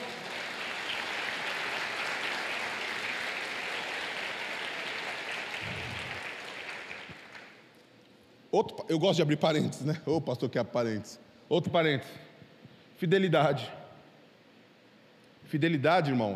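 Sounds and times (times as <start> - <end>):
crowd clapping: 0.0 - 7.7
speech: 8.5 - 12.3, 13.0 - 13.8, 15.5 - 16.3.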